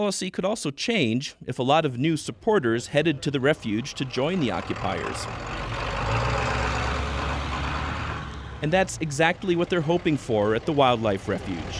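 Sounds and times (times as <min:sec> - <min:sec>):
speech: 0:00.0 - 0:05.7, 0:08.6 - 0:11.7
pickup truck engines rumbling as they pull up at a wildlife refuge: 0:02.0 - 0:11.7.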